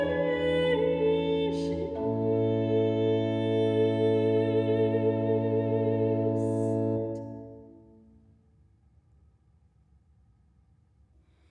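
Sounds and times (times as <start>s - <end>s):
choir singing a chorale: 0.0s - 7.4s.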